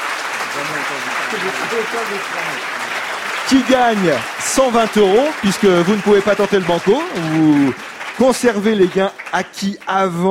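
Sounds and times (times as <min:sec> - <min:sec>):
audience applause: 0:00.0 - 0:10.2
speech: 0:00.6 - 0:02.9, 0:03.5 - 0:10.2.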